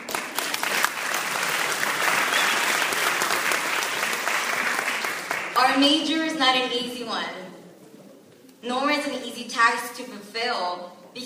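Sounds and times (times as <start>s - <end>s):
audience clapping: 0.0s - 5.8s
speech: 5.8s - 7.4s, 8.6s - 11.2s.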